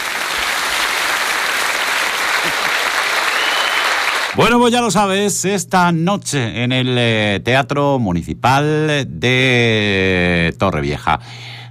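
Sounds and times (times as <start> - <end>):
audience applause: 0.0 - 4.4
speech: 4.4 - 11.6.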